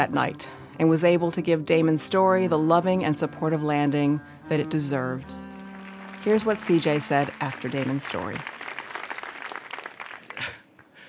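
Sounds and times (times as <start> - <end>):
speech: 0.0 - 5.4, 6.2 - 8.6
audience applause at a live storytelling event: 5.4 - 10.6.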